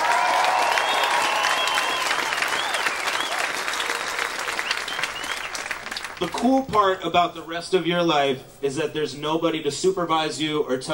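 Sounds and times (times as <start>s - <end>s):
graduation crowd applauding and cheering the class of 2018: 0.0s - 6.7s
speech: 6.2s - 10.9s.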